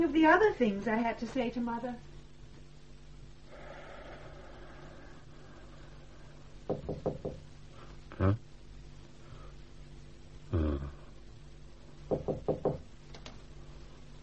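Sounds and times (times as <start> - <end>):
speech: 0.0 - 2.1, 8.2 - 8.4
knocking on a door: 6.7 - 7.5, 12.0 - 12.9.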